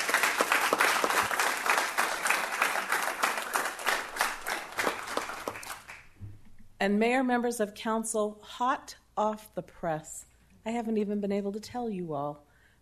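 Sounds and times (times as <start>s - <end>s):
audience applause: 0.0s - 6.2s
speech: 6.8s - 12.8s.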